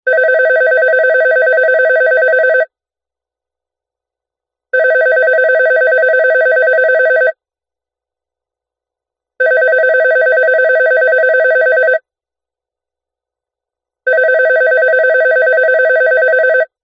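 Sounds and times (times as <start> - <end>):
telephone ringing: 0.1 - 2.7, 4.8 - 7.4, 9.4 - 12.0, 14.1 - 16.8.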